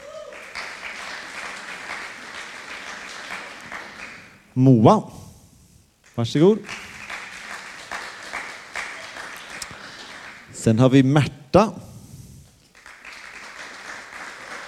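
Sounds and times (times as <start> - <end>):
applause: 0.0 - 4.4, 6.6 - 10.6, 12.7 - 14.6
speech: 4.6 - 5.2, 6.2 - 6.8, 10.6 - 11.9.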